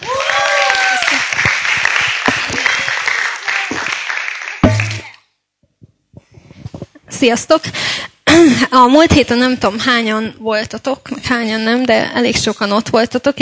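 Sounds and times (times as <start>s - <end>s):
audience applause: 0.0s - 5.2s
speech: 7.2s - 13.4s.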